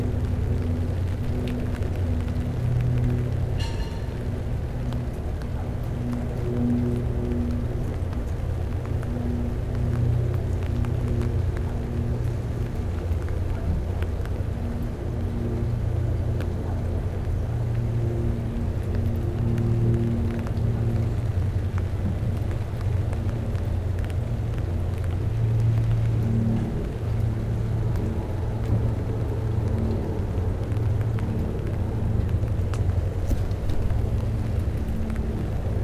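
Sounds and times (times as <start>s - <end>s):
airplane: 0.0s - 35.8s
rain: 0.0s - 35.8s
train: 3.6s - 4.4s, 33.2s - 34.0s.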